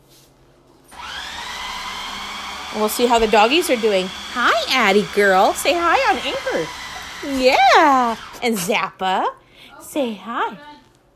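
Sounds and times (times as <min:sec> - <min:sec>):
food processor running in a kitchen: 0:00.9 - 0:08.5
speech: 0:02.8 - 0:10.7.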